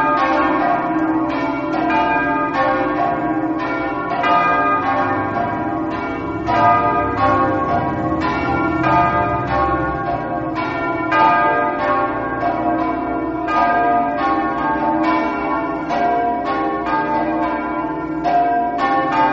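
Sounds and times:
bells: 0.0s - 19.3s.

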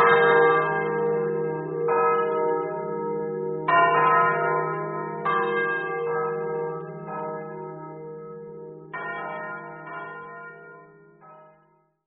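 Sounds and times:
bells ringing: 0.0s - 2.6s, 3.7s - 7.7s, 8.9s - 11.5s.

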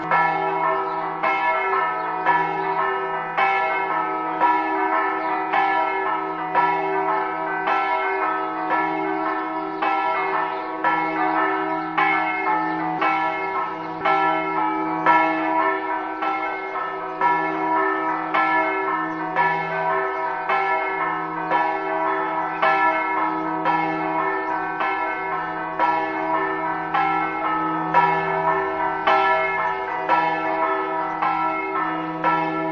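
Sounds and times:
bells ringing: 0.0s - 32.7s.

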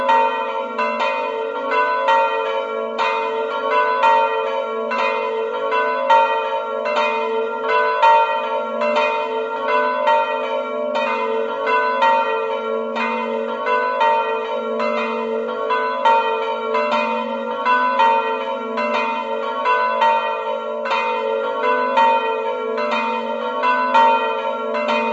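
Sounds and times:
bells in Zeglianutto: 0.0s - 25.1s.

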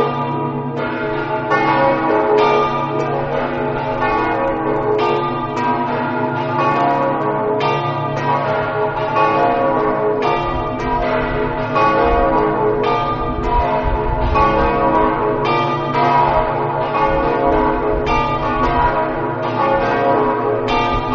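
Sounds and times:
church bells ringing in Tricesimo: 0.0s - 21.1s.

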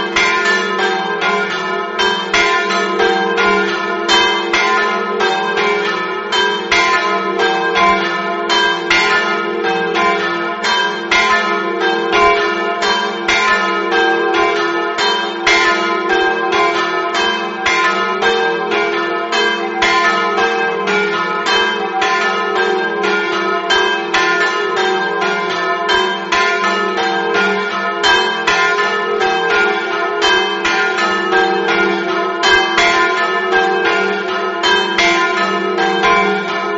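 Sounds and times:
bells ringing on a hill: 0.0s - 36.7s.

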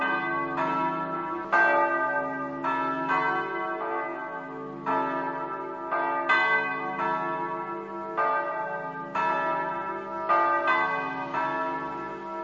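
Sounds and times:
bells: 0.0s - 12.4s.

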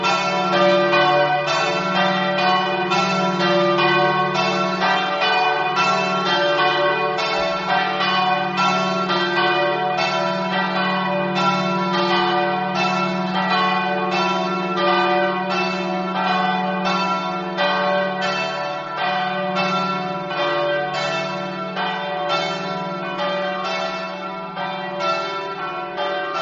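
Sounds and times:
bells ringing: 0.0s - 26.4s.

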